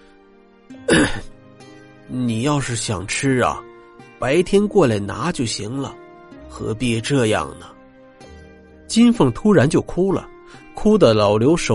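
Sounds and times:
man coughing: 0.9 - 1.3
speech: 1.1 - 1.4, 2.1 - 7.8, 8.9 - 11.7.

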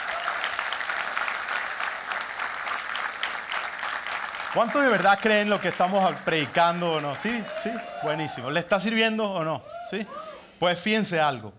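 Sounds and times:
audience applause: 0.0 - 8.6
speech: 4.5 - 11.5.

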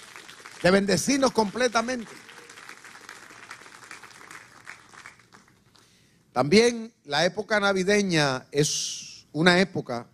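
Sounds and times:
audience applause: 0.0 - 5.7
speech: 0.6 - 2.3, 6.4 - 10.1.

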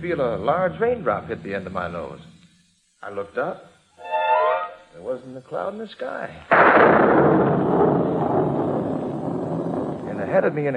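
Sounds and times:
speech: 0.0 - 2.3, 3.0 - 3.7, 5.0 - 8.0, 10.2 - 10.7
thunder-like rumbling of rolling ninepins: 6.7 - 10.7.

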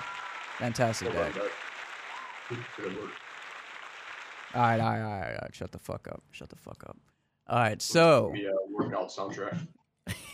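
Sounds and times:
round of applause: 0.0 - 5.1
speech: 0.6 - 1.6, 2.5 - 3.2, 4.5 - 10.3.

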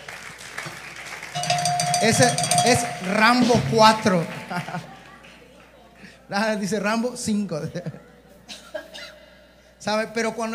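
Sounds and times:
crowd applauding: 0.0 - 5.8
speech: 2.0 - 4.9, 6.3 - 8.1, 9.8 - 10.5
laughter: 3.1 - 5.3.

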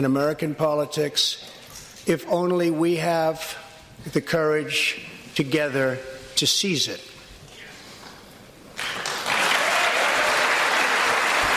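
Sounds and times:
speech: 0.0 - 7.1
audience applause: 8.8 - 11.5.

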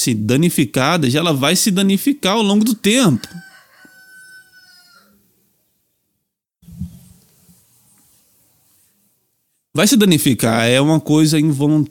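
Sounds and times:
speech: 0.0 - 3.5, 9.8 - 11.8
rooster crowing at midday: 2.8 - 5.2.

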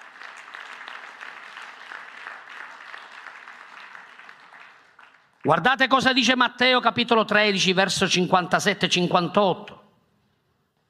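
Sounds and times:
audience applauding: 0.0 - 5.6
speech: 5.4 - 9.8.

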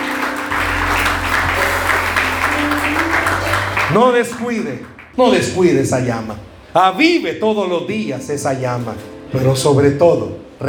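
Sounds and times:
audience applause: 0.0 - 5.2
speech: 3.9 - 10.6.

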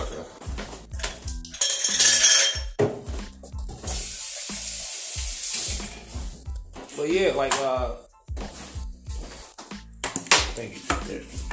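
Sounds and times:
ice cubes dumped into a glass: 1.5 - 2.6
soft low thumping beat: 2.8 - 4.1, 5.7 - 11.5
fizzing hiss: 3.9 - 6.0
speech: 7.0 - 8.0.

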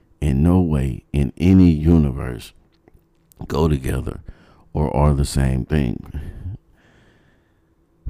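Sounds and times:
speech: 0.4 - 2.6, 3.4 - 6.5
heavy breathing into the microphone: 4.2 - 4.7, 6.1 - 7.7.

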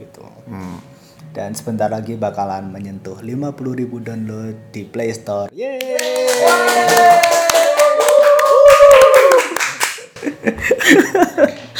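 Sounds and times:
speech: 0.2 - 7.4
several people clapping their hands in a steady rhythm: 5.7 - 10.3
people laughing: 10.0 - 11.7.

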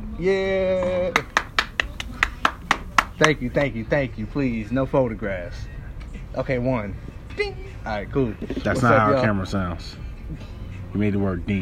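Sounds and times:
speech: 0.2 - 1.2, 3.2 - 5.8, 6.4 - 11.6
person clapping for himself: 1.1 - 3.4.

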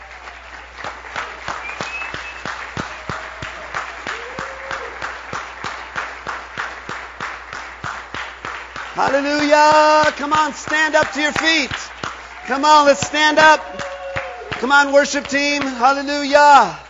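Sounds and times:
audience clapping hands: 0.0 - 16.8
whistles: 1.4 - 4.2
speech: 9.0 - 11.9, 12.5 - 13.8, 14.6 - 16.8.

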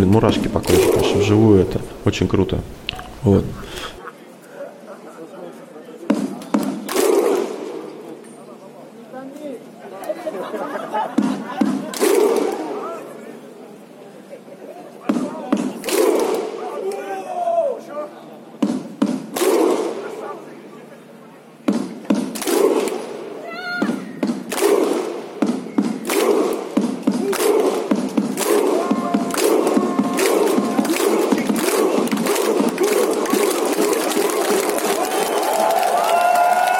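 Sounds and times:
speech: 0.0 - 4.0
crowd chatter: 0.0 - 36.0
laughter: 9.8 - 12.8, 14.0 - 15.5
large stadium crowd thunderclap chant: 15.7 - 17.0, 22.3 - 23.1, 24.4 - 25.2, 26.0 - 36.7.

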